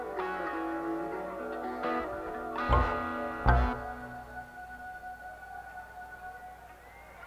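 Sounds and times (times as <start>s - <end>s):
instrument tuning: 0.2s - 5.0s.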